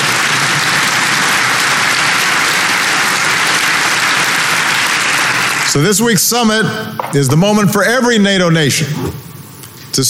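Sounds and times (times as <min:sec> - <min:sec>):
crowd applause: 0:00.0 - 0:05.8
speech: 0:05.7 - 0:09.3.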